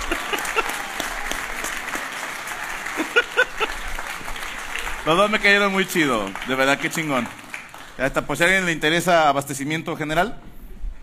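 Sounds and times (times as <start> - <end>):
laughter: 0.0 - 1.4, 2.7 - 4.1
crowd clapping: 0.0 - 9.2
speech: 5.0 - 7.4, 8.0 - 10.4.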